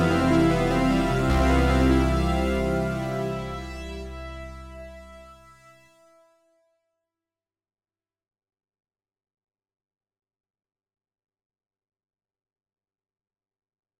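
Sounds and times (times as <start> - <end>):
MS20 synthesizer bass: 0.0 - 5.6.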